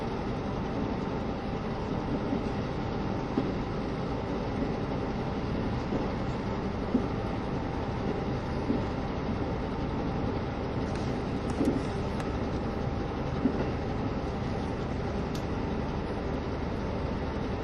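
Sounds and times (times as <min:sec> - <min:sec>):
JR Kyushu KiHa 72 Yufuin no Mori train running: 0:00.0 - 0:17.6.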